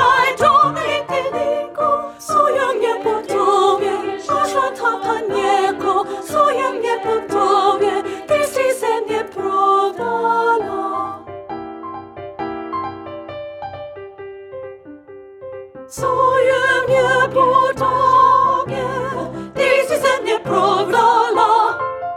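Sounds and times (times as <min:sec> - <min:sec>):
soprano singing: 0:00.0 - 0:11.4, 0:15.9 - 0:21.9.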